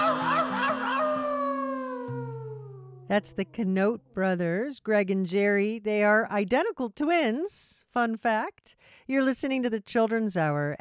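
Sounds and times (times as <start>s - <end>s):
voice mimicking a coyote howl: 0.0s - 3.2s
speech: 3.1s - 10.7s.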